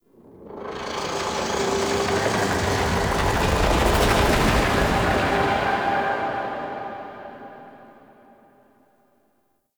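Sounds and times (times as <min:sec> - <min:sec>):
pulsating whoosh: 0:00.3 - 0:07.6.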